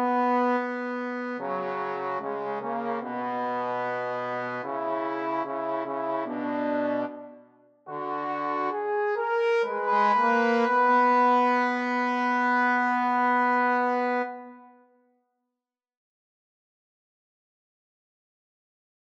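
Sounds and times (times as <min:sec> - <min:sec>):
trombone trio: 0:00.0 - 0:07.3, 0:07.9 - 0:14.5.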